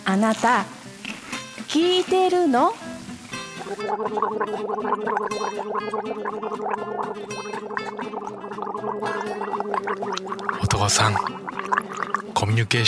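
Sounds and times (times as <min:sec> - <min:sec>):
speech: 0:00.0 - 0:00.8, 0:01.6 - 0:02.9, 0:03.6 - 0:12.8
cola being poured into a glass: 0:03.6 - 0:12.6.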